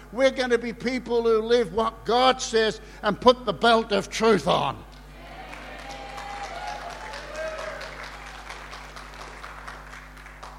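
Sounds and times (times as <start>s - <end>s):
speech: 0.1s - 4.9s
crowd clapping: 4.9s - 10.5s.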